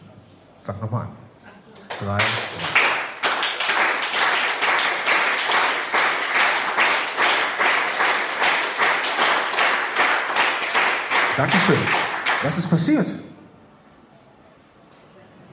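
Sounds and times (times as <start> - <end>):
speech: 0.7 - 1.2, 2.0 - 2.7, 11.4 - 13.4
audience clapping in unison rhythm: 1.8 - 13.0.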